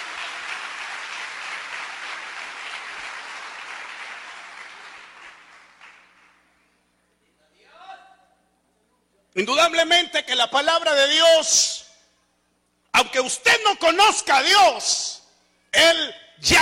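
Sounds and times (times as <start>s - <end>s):
audience applauding: 0.0s - 6.4s
speech: 9.4s - 11.8s, 13.2s - 15.2s, 15.8s - 16.5s.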